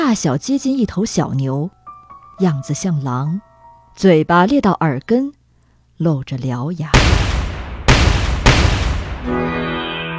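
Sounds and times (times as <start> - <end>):
speech: 0.1 - 1.8, 2.4 - 5.4, 6.0 - 7.1, 9.2 - 9.5
gunshots: 7.0 - 9.3.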